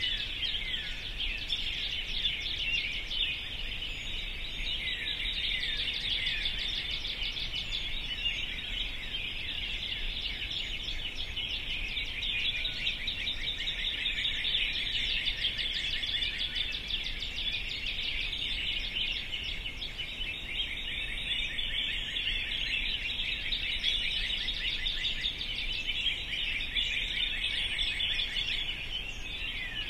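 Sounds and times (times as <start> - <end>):
birds singing in a dense chorus: 0.0 - 29.8.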